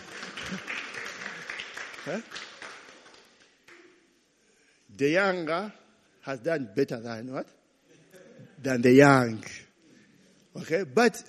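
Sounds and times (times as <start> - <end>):
audience clapping: 0.0 - 4.0
speech: 2.0 - 2.5, 5.0 - 7.6, 8.6 - 9.5, 10.6 - 11.2.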